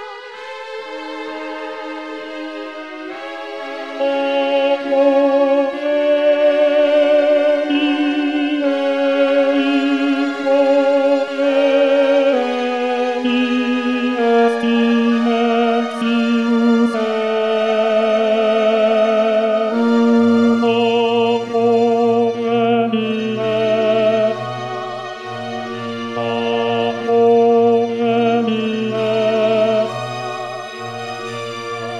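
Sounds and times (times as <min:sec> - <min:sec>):
bass voice singing: 0:04.0 - 0:24.9, 0:26.1 - 0:30.4.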